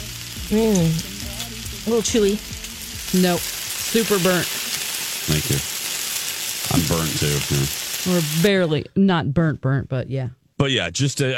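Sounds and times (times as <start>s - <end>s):
bacon frying in a pan: 0.0s - 8.6s
speech: 0.5s - 1.1s, 1.8s - 2.5s, 3.1s - 4.6s, 5.3s - 5.7s, 6.8s - 11.3s.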